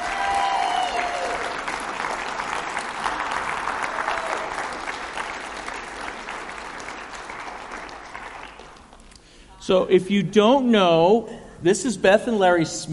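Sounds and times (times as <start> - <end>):
audience applauding to welcome guests onto a stage: 0.0 - 9.1
speech: 9.7 - 12.9.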